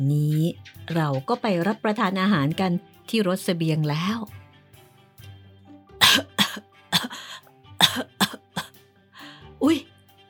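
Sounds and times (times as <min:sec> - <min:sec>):
speech: 0:00.0 - 0:04.4, 0:09.6 - 0:09.8
child coughing: 0:06.0 - 0:07.2, 0:07.8 - 0:08.8.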